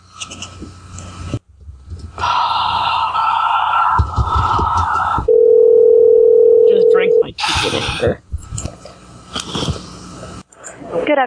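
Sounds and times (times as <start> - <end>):
faint breathy sounds: 2.1 - 5.4, 7.4 - 8.2
electronic telephone tone on the line: 5.3 - 7.2.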